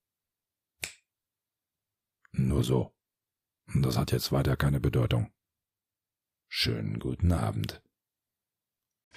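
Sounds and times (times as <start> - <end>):
finger snap: 0.8 - 1.1
speech: 2.4 - 3.0, 3.7 - 5.4, 6.5 - 7.8.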